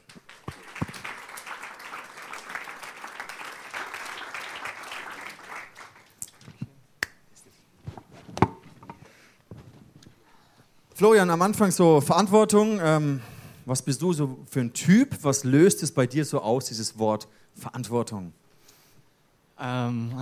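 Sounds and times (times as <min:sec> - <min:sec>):
warm audience applause: 0:00.0 - 0:06.2
speech: 0:11.0 - 0:18.4, 0:19.6 - 0:20.1.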